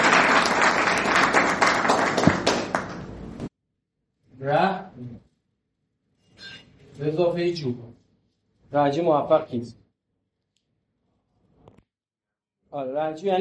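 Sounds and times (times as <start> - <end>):
workshop audience applauding: 0.0 - 3.5
speech: 7.0 - 8.0, 8.7 - 9.8, 12.7 - 13.3.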